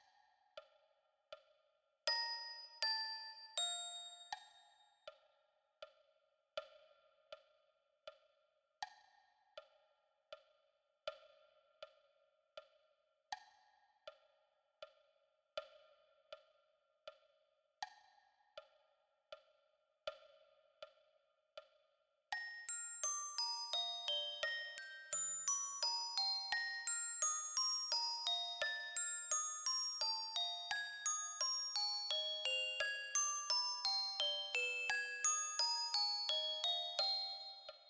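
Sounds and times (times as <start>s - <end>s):
glockenspiel: 2.1s - 4.8s, 22.3s - 37.8s.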